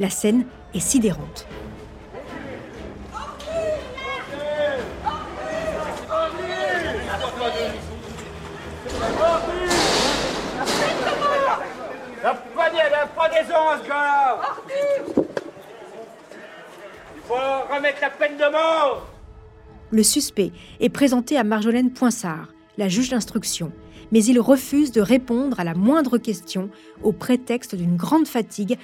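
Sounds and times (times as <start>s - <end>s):
speech: 0.0s - 1.7s, 13.2s - 15.3s, 17.3s - 19.1s, 19.9s - 28.8s
crowd booing: 2.2s - 7.9s, 8.5s - 17.5s.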